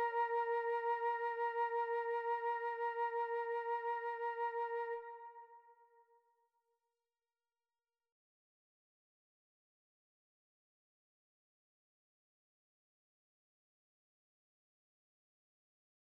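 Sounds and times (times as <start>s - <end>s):
flute: 0.0s - 6.2s.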